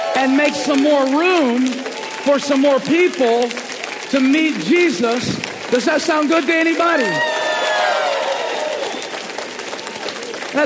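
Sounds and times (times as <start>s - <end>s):
people cheering and whooping: 0.0s - 2.5s, 6.8s - 10.5s
audience applauding: 0.0s - 10.6s
speech: 0.2s - 7.3s.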